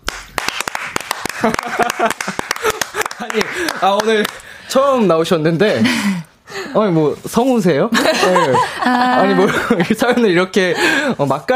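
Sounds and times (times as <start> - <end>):
few people clapping: 0.0 - 4.5
laughter: 1.3 - 4.2, 7.9 - 11.1
speech: 1.4 - 11.5.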